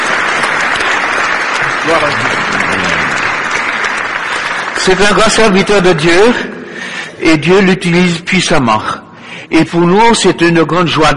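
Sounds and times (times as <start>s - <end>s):
audience applauding: 0.0s - 6.4s
speech: 4.8s - 6.6s, 7.2s - 11.1s.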